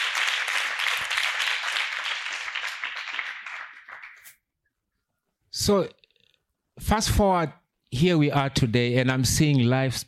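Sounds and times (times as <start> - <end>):
crowd clapping hands: 0.0 - 4.4
speech: 5.6 - 6.0, 6.8 - 10.0.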